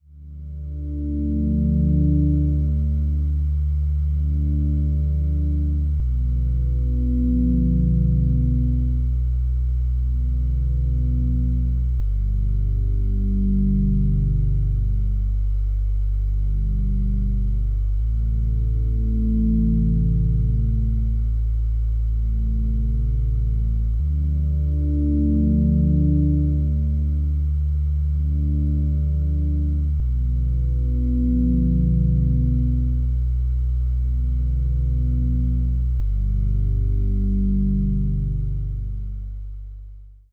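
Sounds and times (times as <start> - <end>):
background music: 0.1 - 39.2.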